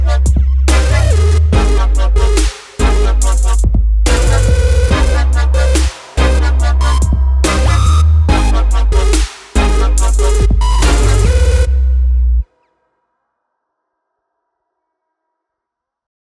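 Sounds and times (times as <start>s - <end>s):
electronic music cue: 0.0s - 12.4s.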